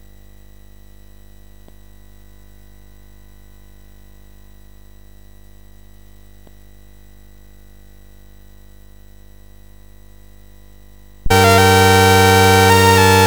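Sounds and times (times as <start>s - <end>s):
MOS6581R4 SID chip music: 11.3s - 13.2s.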